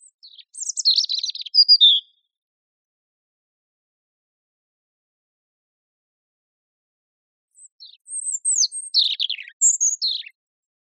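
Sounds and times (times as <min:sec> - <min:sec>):
European robin singing: 0:00.0 - 0:02.3, 0:07.6 - 0:10.4.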